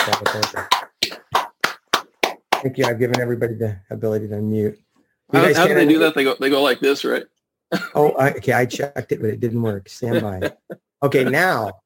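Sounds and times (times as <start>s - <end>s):
scattered applause from unmuted listeners: 0.0s - 3.0s
speech: 0.1s - 0.8s, 2.6s - 11.8s.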